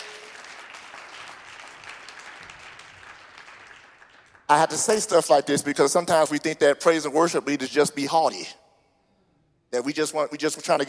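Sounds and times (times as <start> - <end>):
audience clapping hands: 0.0 - 5.0
speech: 4.5 - 8.6, 9.7 - 10.8.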